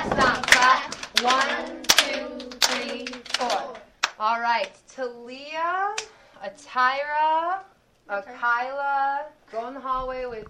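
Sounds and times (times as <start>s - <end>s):
class stomping and clapping in rhythm: 0.0s - 4.2s
speech: 4.2s - 5.8s, 6.4s - 10.4s.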